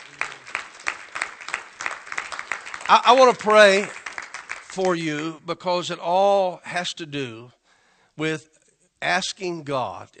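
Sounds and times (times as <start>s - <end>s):
audience hand clapping: 0.0s - 5.3s
speech: 2.9s - 4.0s, 4.7s - 7.6s, 8.2s - 10.1s.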